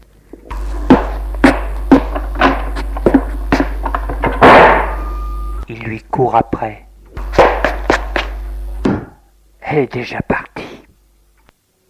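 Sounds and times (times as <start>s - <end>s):
low constant hum: 0.0s - 11.8s
sharp knocks or footfalls: 0.5s - 5.2s, 7.1s - 9.2s
door slamming shut: 4.2s - 5.0s
speech: 5.8s - 6.9s, 9.7s - 10.2s.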